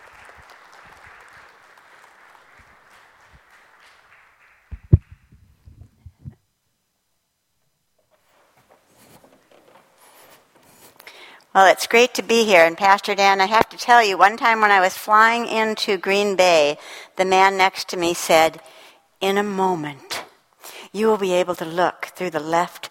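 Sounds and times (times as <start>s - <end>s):
audience applause: 0.0s - 5.0s
speech: 11.6s - 20.0s, 20.9s - 22.8s.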